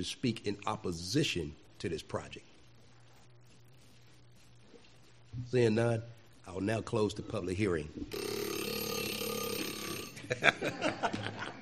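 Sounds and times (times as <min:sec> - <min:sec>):
speech: 0:00.0 - 0:02.5, 0:05.4 - 0:08.4, 0:10.3 - 0:11.6
30-minute timer clock alarm going off: 0:08.1 - 0:10.4
laughter: 0:10.2 - 0:11.6.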